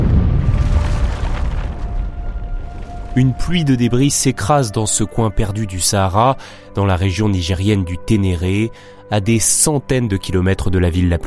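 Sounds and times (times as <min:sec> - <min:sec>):
briefcase bomb exploding: 0:00.0 - 0:04.1
speech: 0:03.2 - 0:11.2.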